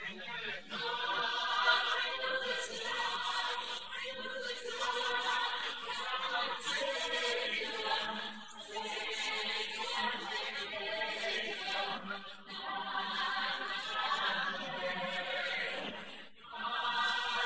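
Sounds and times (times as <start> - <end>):
vocals: 0.0 - 17.4.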